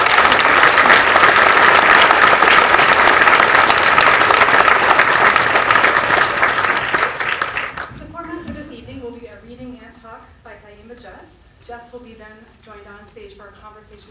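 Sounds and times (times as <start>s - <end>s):
audience applause: 0.0s - 8.0s.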